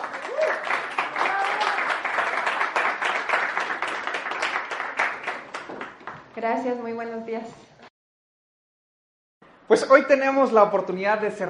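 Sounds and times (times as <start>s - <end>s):
audience applause: 0.0s - 6.2s
speech: 6.4s - 7.7s, 9.7s - 11.4s.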